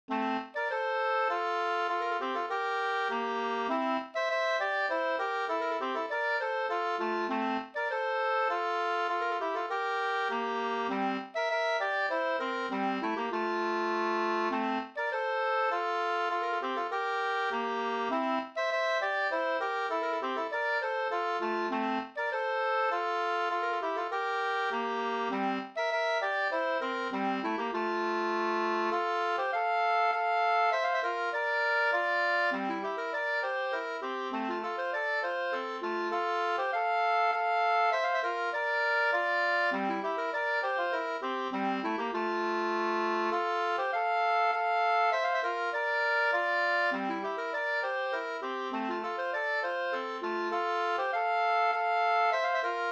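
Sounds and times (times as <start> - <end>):
Swedish polska folk tune: 0.0 - 52.9.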